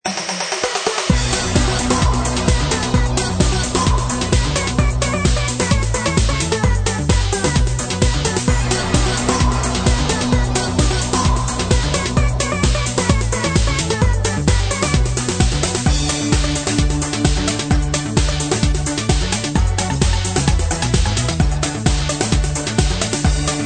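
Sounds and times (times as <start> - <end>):
dance techno music: 0.0 - 23.6.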